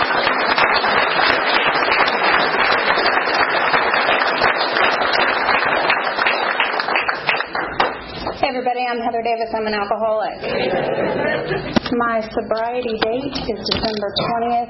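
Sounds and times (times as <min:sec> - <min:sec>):
crowd applause: 0:00.0 - 0:08.4
speech: 0:08.9 - 0:14.6
laughter: 0:10.4 - 0:11.9.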